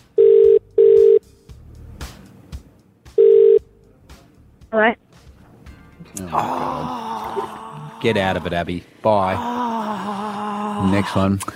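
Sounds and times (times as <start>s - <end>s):
ringback tone of an outgoing phone call: 0.2s - 1.2s, 3.2s - 3.7s
speech: 4.8s - 5.0s, 8.0s - 9.6s, 10.8s - 11.5s.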